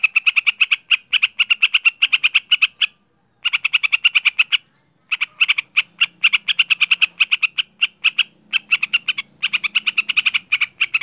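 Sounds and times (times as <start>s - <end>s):
bird singing harsh chirps: 0.0s - 11.0s.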